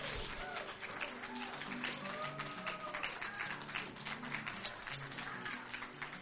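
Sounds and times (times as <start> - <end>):
audience clapping hands: 0.0 - 6.2.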